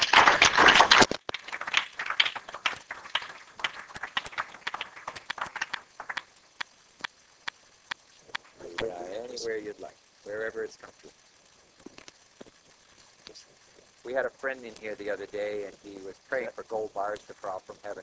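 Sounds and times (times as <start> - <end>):
crowd applause: 0.0 - 6.3
speech: 9.4 - 11.3, 14.1 - 18.0.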